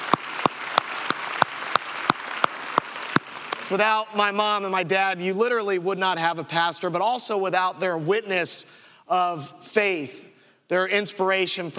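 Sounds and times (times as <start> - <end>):
audience applause: 0.0 - 3.8
speech: 3.7 - 11.7.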